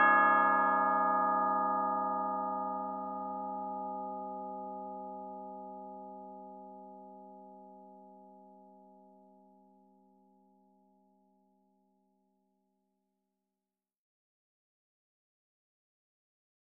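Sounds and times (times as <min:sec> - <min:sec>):
clock bell melody: 0:00.0 - 0:05.6.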